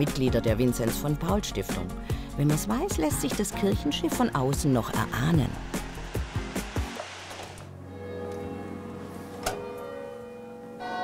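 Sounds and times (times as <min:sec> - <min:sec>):
speech: 0:00.0 - 0:05.8
church bells chiming in Big Ben style: 0:07.9 - 0:11.0.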